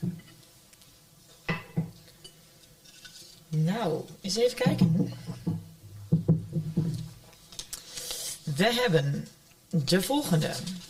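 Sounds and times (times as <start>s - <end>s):
wine glass clinking: 1.5s - 2.4s
speech: 3.5s - 5.4s, 8.6s - 10.8s.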